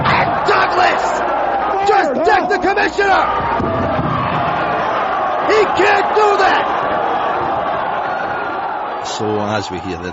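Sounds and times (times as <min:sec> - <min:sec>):
wrestling crowd applauding: 0:00.0 - 0:10.1
speech: 0:02.4 - 0:04.2, 0:09.1 - 0:10.1.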